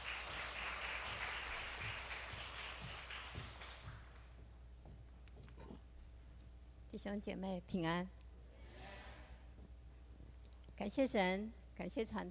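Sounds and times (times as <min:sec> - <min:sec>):
audience clapping in welcome: 0:00.0 - 0:04.4
speech: 0:06.9 - 0:08.2, 0:10.8 - 0:12.2.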